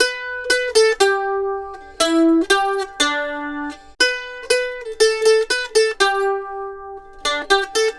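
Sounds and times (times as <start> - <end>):
mandolin lead: 0.0 - 7.9.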